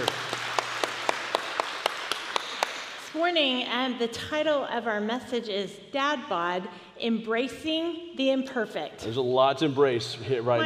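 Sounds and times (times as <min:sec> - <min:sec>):
audience hand claps in a steady rhythm: 0:00.0 - 0:03.2
speech: 0:03.2 - 0:10.6.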